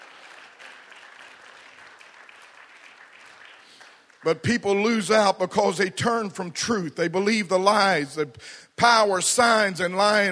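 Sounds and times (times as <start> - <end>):
audience applause: 0.0 - 4.3
speech: 4.2 - 10.3.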